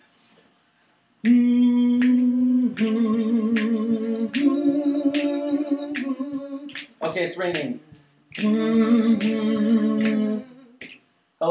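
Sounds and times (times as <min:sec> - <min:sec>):
speech: 0:01.2 - 0:01.6, 0:07.1 - 0:10.5
finger snapping: 0:01.2 - 0:08.6, 0:10.0 - 0:11.1.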